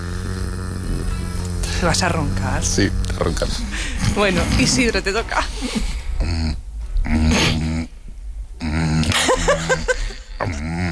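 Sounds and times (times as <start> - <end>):
voice imitating a vibrator running out of battery: 0.0 - 4.9, 6.2 - 7.9, 8.6 - 10.9
speech: 1.8 - 7.2
laughter: 9.0 - 10.3.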